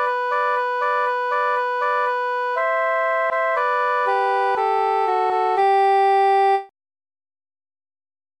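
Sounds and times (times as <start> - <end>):
muted tenor instrument: 0.0 - 6.7.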